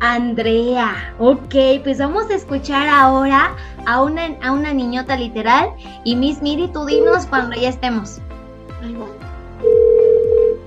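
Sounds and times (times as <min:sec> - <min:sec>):
speech: 0:00.2 - 0:09.2
outgoing call ringback tone: 0:09.6 - 0:10.6.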